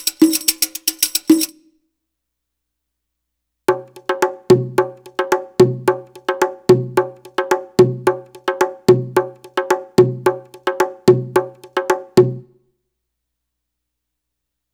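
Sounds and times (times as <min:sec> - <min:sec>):
Arabic rhythm percussion: 0:00.0 - 0:01.6, 0:03.7 - 0:12.6.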